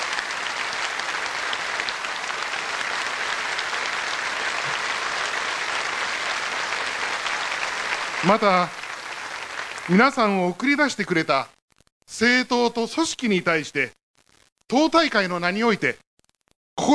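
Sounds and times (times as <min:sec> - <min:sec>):
applause from a large audience: 0:00.0 - 0:10.6
speech: 0:08.3 - 0:08.8, 0:09.9 - 0:11.5, 0:12.1 - 0:14.0, 0:14.7 - 0:16.0.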